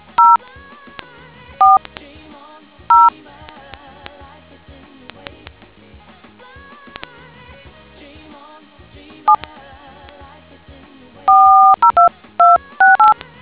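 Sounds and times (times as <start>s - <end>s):
DTMF tones: 1.6s - 1.9s, 2.9s - 3.1s, 11.3s - 13.2s.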